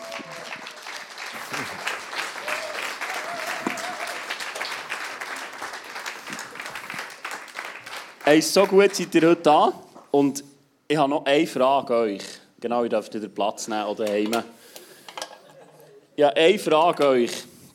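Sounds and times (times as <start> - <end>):
audience applause: 0.0 - 9.1
speech: 8.3 - 14.6, 16.2 - 17.5.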